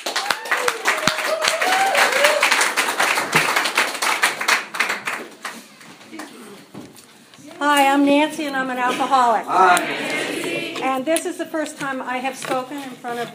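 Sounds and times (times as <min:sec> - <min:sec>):
meeting audience applause welcoming a speaker: 0:00.0 - 0:06.3
speech: 0:07.7 - 0:10.2, 0:10.8 - 0:13.3.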